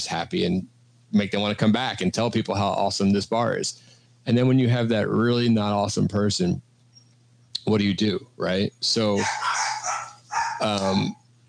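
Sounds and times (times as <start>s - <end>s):
speech: 0.0s - 6.7s, 7.6s - 9.7s, 10.6s - 11.2s
dogs barking: 9.2s - 11.2s
tonal yowl sliding down in pitch: 9.2s - 11.2s.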